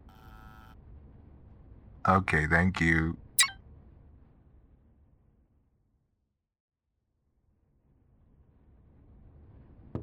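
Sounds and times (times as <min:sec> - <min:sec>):
door buzzer: 0:00.0 - 0:00.8
speech: 0:02.0 - 0:03.2.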